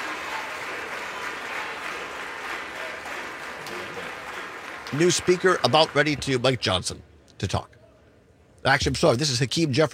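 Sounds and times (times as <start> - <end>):
House chamber applause for new Speaker: 0.0 - 6.6
speech: 4.9 - 7.8, 8.6 - 9.9.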